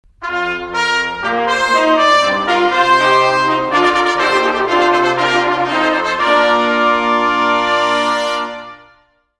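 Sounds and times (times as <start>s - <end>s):
music: 0.0s - 9.3s.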